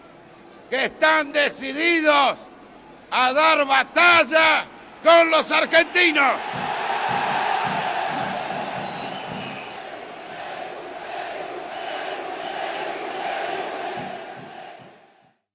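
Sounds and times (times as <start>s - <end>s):
speech: 0.7s - 2.5s, 3.1s - 7.2s
large crowd shouting in support of Peru: 4.2s - 15.3s.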